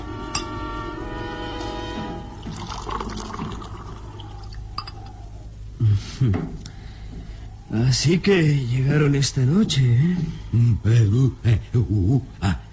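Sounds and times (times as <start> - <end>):
liquid poured into a glass inside a rustic hut: 2.4 - 5.0
speech: 6.2 - 6.6, 7.7 - 12.6.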